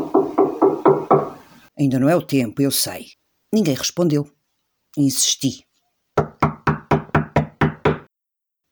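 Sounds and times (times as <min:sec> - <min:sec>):
firm knocking on a door: 0:00.0 - 0:01.4, 0:06.2 - 0:08.1
speech: 0:01.8 - 0:04.4, 0:05.0 - 0:05.7.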